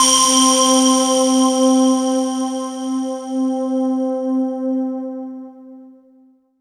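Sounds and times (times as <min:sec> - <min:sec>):
synth line in C4: 0:00.0 - 0:04.0.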